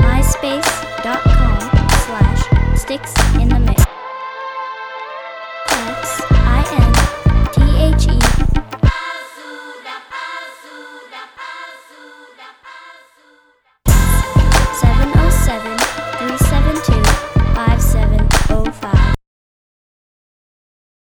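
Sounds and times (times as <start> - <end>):
jungle music beat: 0.0 - 3.9, 5.7 - 9.3, 13.9 - 19.2.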